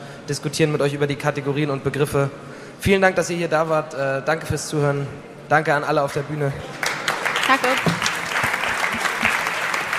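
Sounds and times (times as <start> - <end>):
speech: 0.3 - 6.8, 7.5 - 8.1
audience applause: 6.7 - 9.9.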